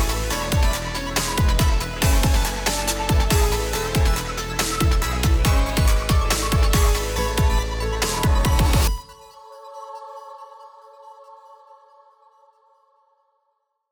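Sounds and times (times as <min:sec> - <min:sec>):
remixed song samples: 0:00.0 - 0:10.2.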